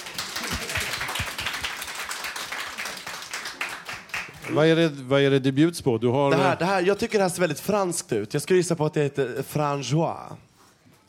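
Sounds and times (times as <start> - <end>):
applause: 0.0 - 4.6
speech: 4.5 - 10.5.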